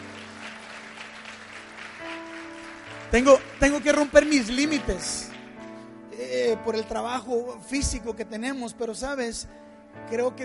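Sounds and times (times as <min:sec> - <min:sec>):
audience applause: 0:00.0 - 0:05.6
speech: 0:03.1 - 0:05.3, 0:06.2 - 0:10.4.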